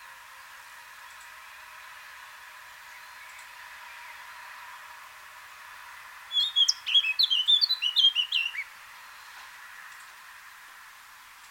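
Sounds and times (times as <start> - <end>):
Eurasian blackcap Sylvia atricapilla fluty warbling song: 6.3 - 8.7.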